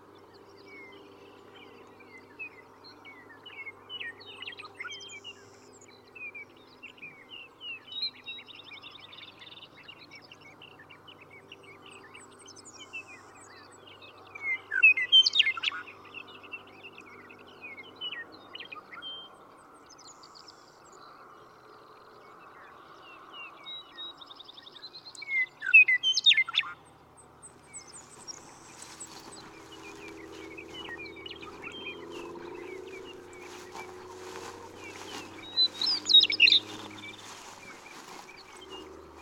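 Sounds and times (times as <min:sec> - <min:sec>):
Western meadowlark song: 0:00.0 - 0:39.1
soft chirps from other birds: 0:23.7 - 0:39.1.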